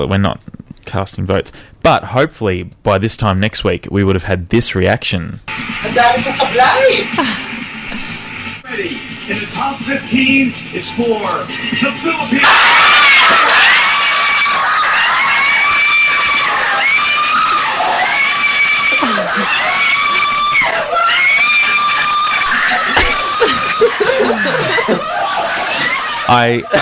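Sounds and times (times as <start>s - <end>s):
speech: 0.0s - 7.5s, 8.8s - 13.6s, 26.3s - 26.8s
men screaming excitedly at pageant result: 12.3s - 26.8s
laughter and chatter: 13.3s - 26.8s.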